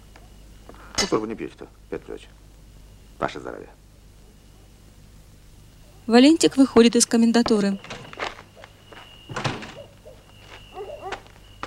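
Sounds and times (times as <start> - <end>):
speech: 1.0 - 2.4, 3.2 - 3.8, 6.1 - 8.0
door closing: 7.8 - 8.4, 9.3 - 9.9.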